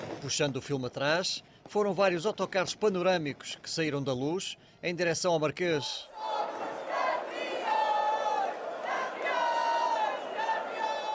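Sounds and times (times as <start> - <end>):
speech: 0.2 - 6.3
large crowd of celebrating football fans chanting and cheering: 5.8 - 11.1.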